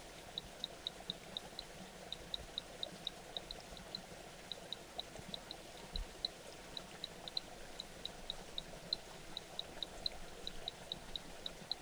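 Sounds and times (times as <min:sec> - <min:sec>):
rain frog calling ticking notes: 0:00.4 - 0:11.8.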